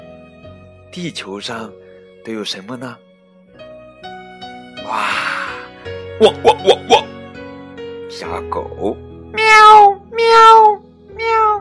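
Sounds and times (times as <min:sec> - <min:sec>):
speech: 0:00.9 - 0:03.1, 0:04.9 - 0:05.3, 0:06.2 - 0:07.1, 0:08.2 - 0:09.6
laughter: 0:06.2 - 0:07.1
cat meowing: 0:09.4 - 0:11.5.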